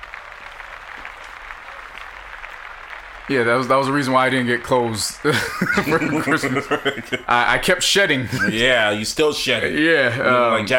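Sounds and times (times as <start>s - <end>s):
round of applause: 0.0s - 7.4s
speech: 3.3s - 10.7s
laughter: 5.2s - 9.0s.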